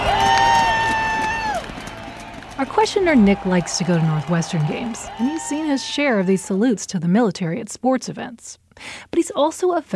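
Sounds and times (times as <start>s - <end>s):
stadium crowd cheering at a football game: 0.0s - 6.8s
speech: 2.6s - 9.9s.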